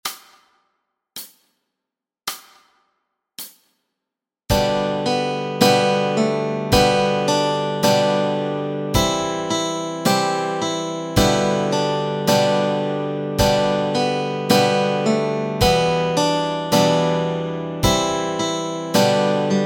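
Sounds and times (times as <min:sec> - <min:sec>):
guitar and ukulele playing melody and chords: 0:04.5 - 0:19.6.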